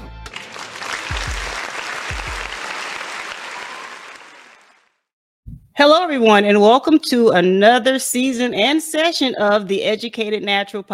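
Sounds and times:
audience applause greeting the podcast host: 0.2 - 4.9
speech: 5.8 - 10.9.

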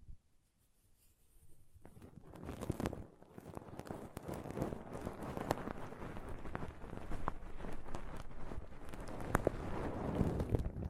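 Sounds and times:
pom poms being squished and brushed: 2.1 - 10.7.

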